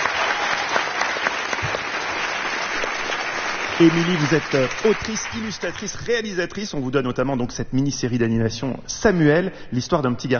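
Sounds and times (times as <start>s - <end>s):
audience applause: 0.0s - 6.3s
speech: 3.8s - 10.3s.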